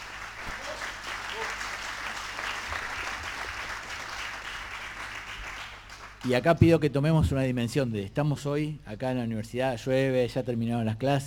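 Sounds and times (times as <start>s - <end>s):
audience applause: 0.0s - 6.2s
speech: 6.2s - 11.2s.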